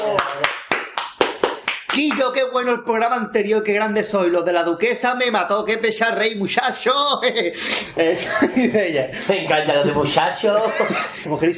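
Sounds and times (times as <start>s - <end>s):
applause: 0.0s - 2.3s
speech: 2.0s - 11.5s
laughter: 7.0s - 11.3s.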